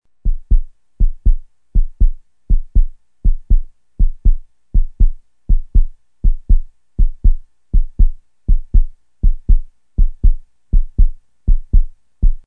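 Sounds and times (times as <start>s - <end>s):
heartbeat: 0.2s - 12.4s.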